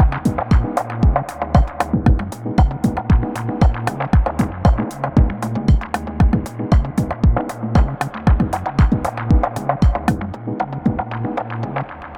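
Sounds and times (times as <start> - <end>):
breakbeat drum variations: 0.0 - 11.3.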